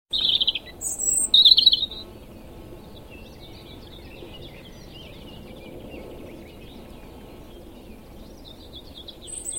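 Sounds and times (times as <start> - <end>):
European robin Erithacus rubecula giving high thin scratchy warbled phrases: 0.1 - 2.0.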